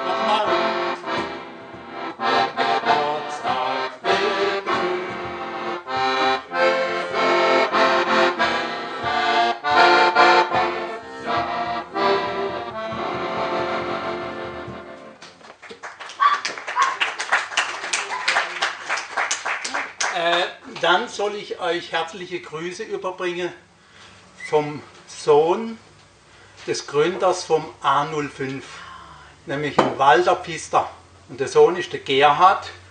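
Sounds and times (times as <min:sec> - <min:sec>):
lively accordion serenade: 0:00.0 - 0:15.4
applause: 0:15.2 - 0:20.5
speech: 0:21.2 - 0:23.6, 0:24.5 - 0:25.8, 0:26.7 - 0:28.7, 0:29.5 - 0:32.8.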